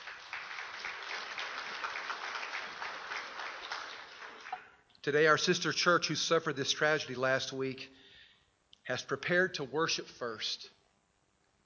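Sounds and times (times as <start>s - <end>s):
audience applause: 0.0s - 4.7s
speech: 5.0s - 8.0s, 8.8s - 10.8s.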